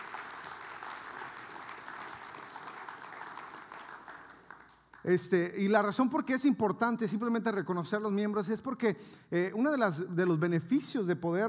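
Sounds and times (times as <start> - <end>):
audience applause: 0.0 - 5.0
speech: 5.0 - 11.4.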